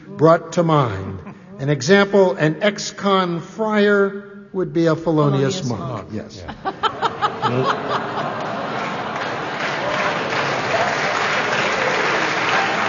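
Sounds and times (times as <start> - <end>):
speech: 0.2 - 6.8, 7.4 - 8.4
laughter: 5.3 - 10.7
applause: 8.2 - 12.8.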